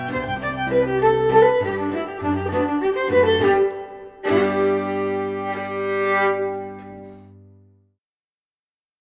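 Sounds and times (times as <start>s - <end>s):
fiddle playing a reel: 0.0s - 7.0s
piano: 0.0s - 7.8s.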